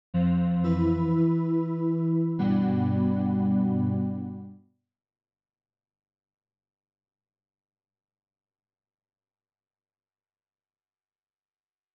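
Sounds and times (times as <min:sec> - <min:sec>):
game over sound: 0:00.4 - 0:04.5.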